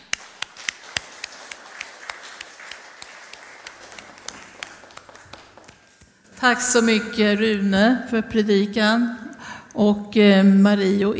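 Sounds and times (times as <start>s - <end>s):
audience applause: 0.0s - 6.3s
speech: 6.4s - 9.2s, 9.8s - 11.1s.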